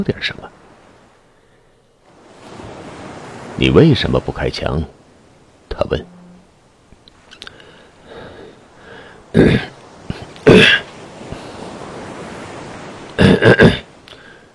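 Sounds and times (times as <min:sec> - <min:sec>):
speech: 0:00.0 - 0:00.6, 0:03.6 - 0:05.0, 0:05.8 - 0:06.2, 0:09.4 - 0:09.8, 0:13.4 - 0:13.8
person clearing throat: 0:10.4 - 0:10.8, 0:13.2 - 0:13.9.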